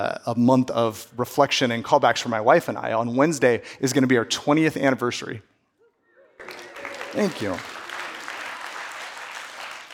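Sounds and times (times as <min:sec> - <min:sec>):
speech: 0:00.0 - 0:05.5, 0:07.1 - 0:07.7
audience applause: 0:06.4 - 0:09.9.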